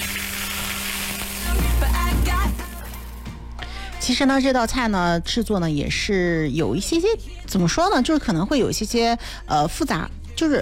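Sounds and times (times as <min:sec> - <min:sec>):
hot rapeseed oil with red Sichuan peppercorns poured over a dish, sizzling: 0:00.0 - 0:03.2
speech: 0:04.0 - 0:10.5.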